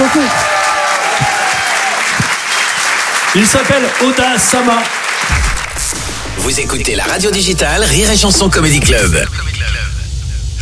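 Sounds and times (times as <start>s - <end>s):
audience applause: 0.0s - 6.0s
speech: 3.4s - 5.5s, 6.4s - 9.9s.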